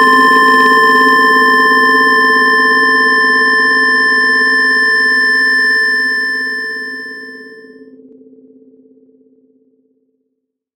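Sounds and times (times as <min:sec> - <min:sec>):
computer tones: 0:00.0 - 0:07.7.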